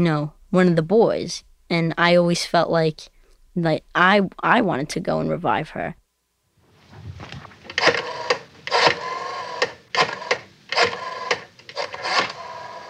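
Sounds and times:
speech: 0.0s - 6.0s
rotary phone dial turning: 7.7s - 12.8s.

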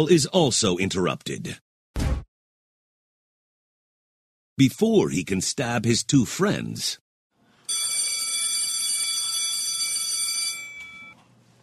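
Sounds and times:
speech: 0.0s - 1.6s, 4.6s - 7.0s
electric school bell ringing: 7.7s - 11.2s.

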